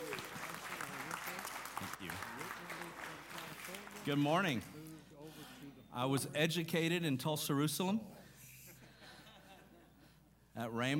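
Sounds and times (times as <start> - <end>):
church congregation applause welcoming a guest pastor: 0.0 - 4.9
speech: 4.0 - 4.8, 6.0 - 8.2, 10.6 - 10.9.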